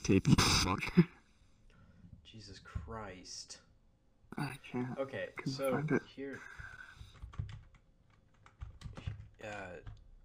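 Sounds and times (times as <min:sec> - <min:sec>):
speech: 0:00.1 - 0:01.2, 0:02.3 - 0:03.6, 0:04.3 - 0:06.7, 0:09.4 - 0:10.0
typing a Google search on a computer keyboard: 0:06.6 - 0:10.2.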